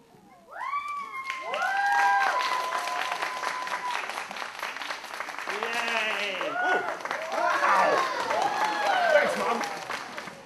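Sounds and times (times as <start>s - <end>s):
people cheering: 0.5s - 10.4s
audience applause: 1.1s - 10.4s.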